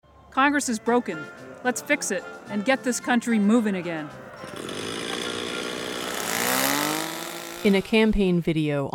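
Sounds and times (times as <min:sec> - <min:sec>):
speech: 0:00.4 - 0:04.6, 0:07.6 - 0:08.9
chainsaw cutting through a tug-of-war rope: 0:04.4 - 0:08.2.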